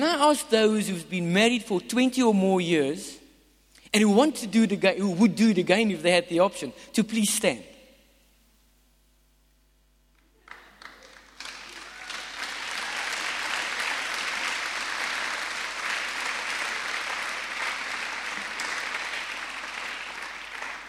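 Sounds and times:
speech: 0.0 - 3.2, 3.9 - 7.7
audience applauding: 10.2 - 20.8.

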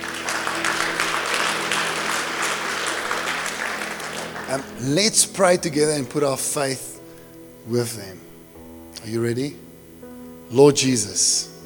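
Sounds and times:
audience clapping: 0.0 - 5.5
speech: 4.5 - 6.9, 7.6 - 8.3, 9.0 - 9.6, 10.5 - 11.5.

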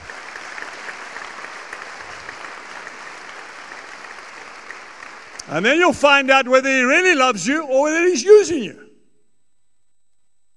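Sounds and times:
audience clapping: 0.0 - 7.6
speech: 5.5 - 8.8.

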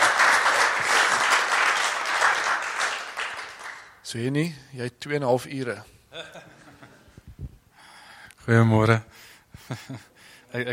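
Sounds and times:
audience applause: 0.0 - 4.0
speech: 4.1 - 6.5, 8.5 - 10.7.

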